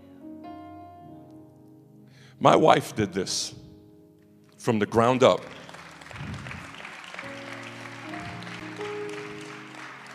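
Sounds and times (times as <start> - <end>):
speech: 2.4 - 3.6, 4.6 - 5.6
audience applause: 5.4 - 10.1.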